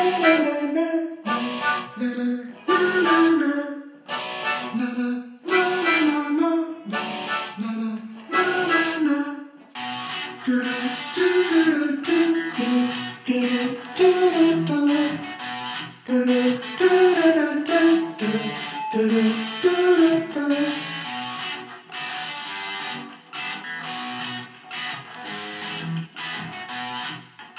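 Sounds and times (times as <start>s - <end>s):
vocals: 0.0s - 9.7s, 10.3s - 21.4s
electric guitar: 0.0s - 27.5s.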